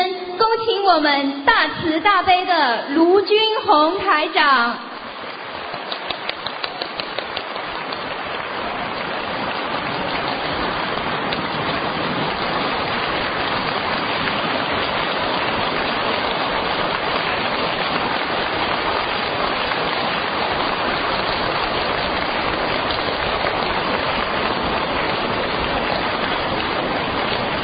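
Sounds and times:
speech: 0.8s - 4.9s
audience applause: 3.8s - 27.6s.

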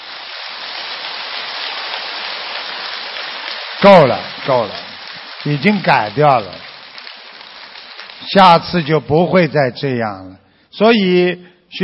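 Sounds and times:
audience applause: 0.0s - 9.1s
speech: 3.8s - 4.8s, 5.4s - 6.7s, 8.2s - 11.8s.

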